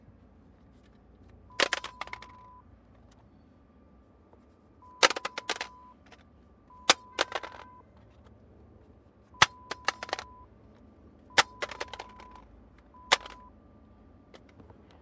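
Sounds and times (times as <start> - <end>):
satnav being dropped: 1.6 - 2.5, 5.0 - 6.2, 6.9 - 7.7, 9.4 - 10.3, 11.4 - 12.4, 13.1 - 13.4.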